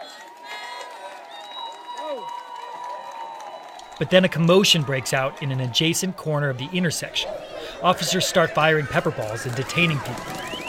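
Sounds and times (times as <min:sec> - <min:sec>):
whoops: 0:00.0 - 0:04.0
protesters cheering: 0:00.0 - 0:10.6
speech: 0:02.1 - 0:02.4, 0:04.0 - 0:10.5
laughter: 0:04.0 - 0:10.6.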